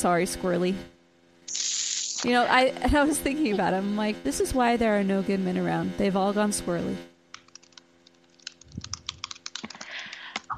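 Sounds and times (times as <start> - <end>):
speech: 0.0 - 0.9, 2.2 - 7.1
typing on a computer keyboard: 7.4 - 10.5.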